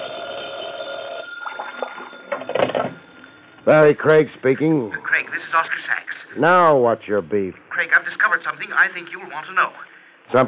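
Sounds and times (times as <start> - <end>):
old-fashioned telephone bell ringing: 0.0 - 3.7
speech: 3.7 - 10.4.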